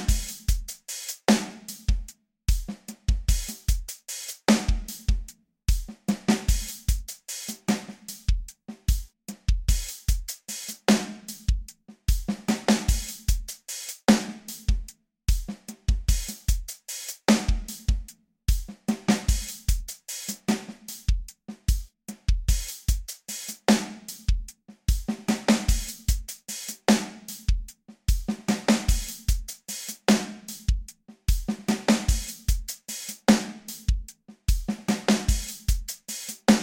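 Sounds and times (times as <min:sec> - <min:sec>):
drums playing: 0:00.0 - 0:36.6.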